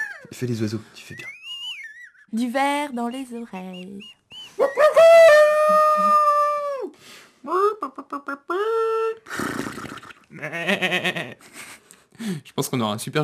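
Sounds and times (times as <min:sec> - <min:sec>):
speech: 0:00.3 - 0:01.4, 0:02.3 - 0:04.7, 0:05.7 - 0:06.3, 0:07.4 - 0:09.6, 0:10.3 - 0:11.6, 0:12.2 - 0:13.2
person imitating a howling dog: 0:04.6 - 0:09.2
person making rough grunting animal-like noises: 0:07.4 - 0:09.2.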